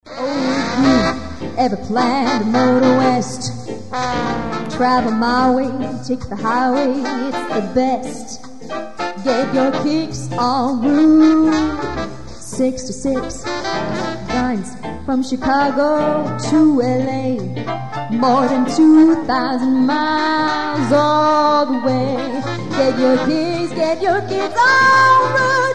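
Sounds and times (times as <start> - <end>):
swing music: 0.0 - 25.7.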